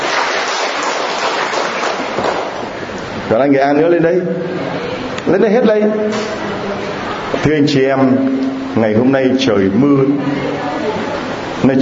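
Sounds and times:
audience applauding people from Nghệ An: 0.0s - 2.8s
speech: 3.3s - 4.6s, 5.2s - 10.6s, 11.6s - 11.8s.

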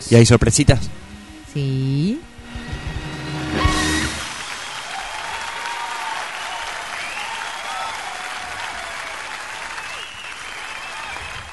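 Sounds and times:
speech: 0.0s - 2.3s
audience applause at a live stage event: 3.5s - 11.5s.

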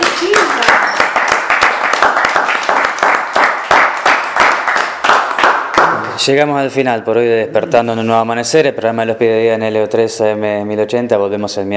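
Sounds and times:
applause: 0.0s - 6.2s
speech: 6.3s - 11.7s.

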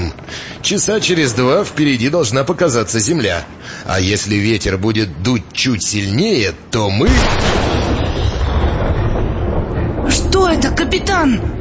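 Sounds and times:
speech: 0.6s - 7.7s, 10.5s - 11.5s
large pirate cannon firing: 7.0s - 10.2s.

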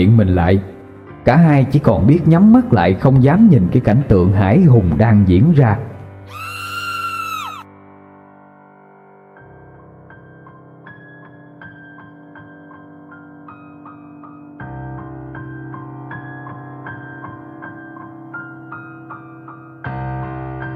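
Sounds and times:
speech: 0.0s - 6.4s
piercing scream: 6.3s - 7.7s.

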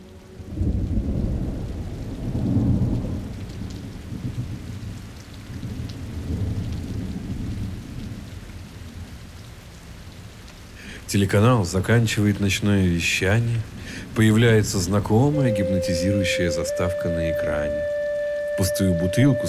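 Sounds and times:
rain: 0.0s - 19.4s
thunder: 0.5s - 8.3s
speech: 11.1s - 18.0s, 18.6s - 19.4s.

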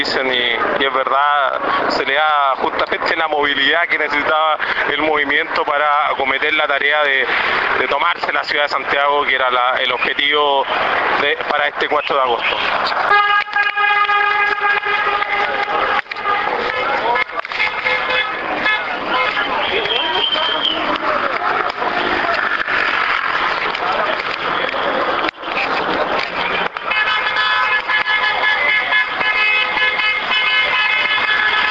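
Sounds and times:
speech: 0.0s - 14.8s
crowd noise of a street movement's march in Santiago, Chile: 0.0s - 31.6s
dense traffic noise on Marín street in Santiago, Chile: 0.0s - 31.6s
passing car horns honking in approval during a march on Marín street, Santiago: 12.2s - 21.2s, 26.4s - 31.6s.

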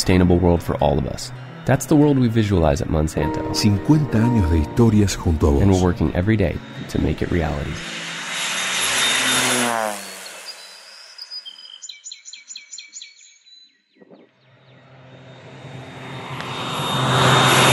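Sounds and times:
speech: 0.0s - 8.0s
small crop-dusting propeller plane spraying pesticide flying overhead: 0.0s - 11.4s, 14.4s - 17.7s
bird chirping: 10.2s - 15.2s.

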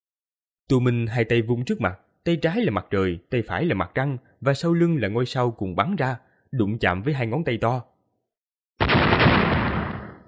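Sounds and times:
speech: 0.7s - 7.9s
explosion sound effect: 8.8s - 10.2s.

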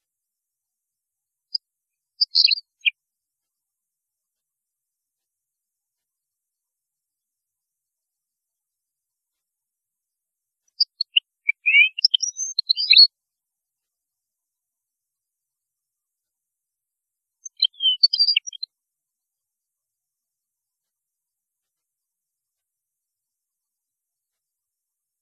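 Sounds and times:
European goldfinch song: 2.2s - 2.7s, 10.8s - 13.1s, 17.4s - 18.7s.

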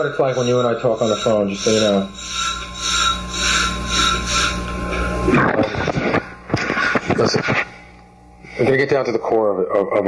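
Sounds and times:
speech: 0.0s - 2.6s, 5.3s - 5.7s, 7.2s - 7.7s, 8.6s - 10.0s
slinky toy being played with: 0.0s - 5.1s.

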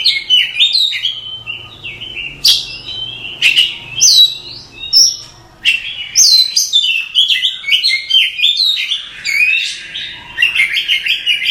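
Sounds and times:
nightingale singing: 0.0s - 11.4s.

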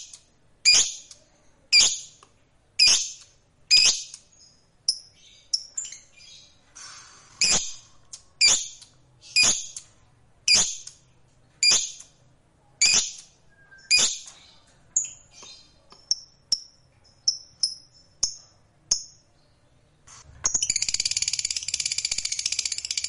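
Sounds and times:
fighter-type lovebird chirps: 0.0s - 2.2s, 2.8s - 6.6s, 7.4s - 9.9s, 10.5s - 11.0s, 11.6s - 12.1s, 12.8s - 19.6s, 20.3s - 23.0s.

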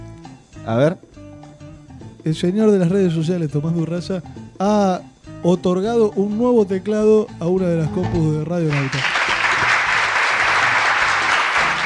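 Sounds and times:
speech: 0.7s - 1.1s, 2.2s - 9.2s
crowd applause from the stands: 8.7s - 11.8s.

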